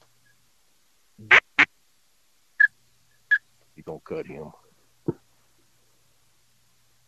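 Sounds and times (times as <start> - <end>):
pintail duck whistle call: 1.2 - 1.7
speech: 4.0 - 5.2.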